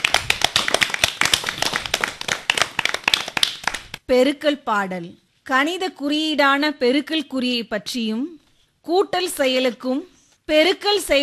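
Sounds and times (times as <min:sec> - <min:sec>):
audience clapping: 0:00.0 - 0:04.0
speech: 0:04.1 - 0:11.2.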